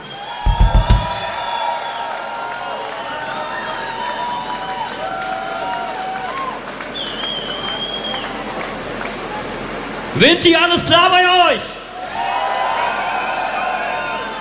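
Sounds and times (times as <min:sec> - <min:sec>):
concert crowd cheers and whistles: 0:00.0 - 0:08.7, 0:11.9 - 0:14.4
heavy thumps: 0:00.5 - 0:01.5
concert audience clapping: 0:00.5 - 0:09.4
speech: 0:10.2 - 0:11.7.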